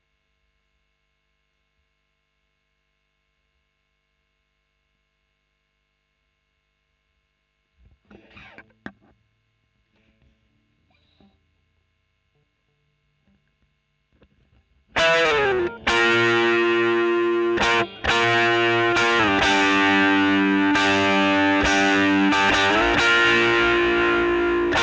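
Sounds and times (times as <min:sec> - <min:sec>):
overdriven electric guitar recorded with Royer microphone: 0:08.1 - 0:09.1, 0:14.9 - 0:24.8.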